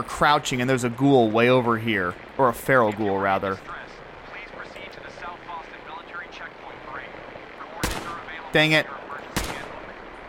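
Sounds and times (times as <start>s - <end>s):
speech: 0.0s - 3.8s, 8.5s - 9.0s
video game gunshot fired at a feral ghoul in a diner: 7.8s - 8.3s, 9.3s - 9.8s.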